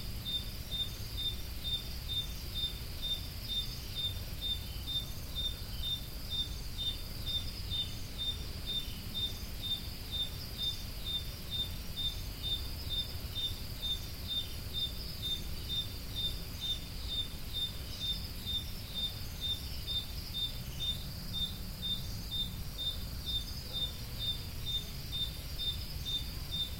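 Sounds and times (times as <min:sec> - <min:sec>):
cricket chirping: 0:00.0 - 0:26.7
faint insect buzzing: 0:00.0 - 0:26.7.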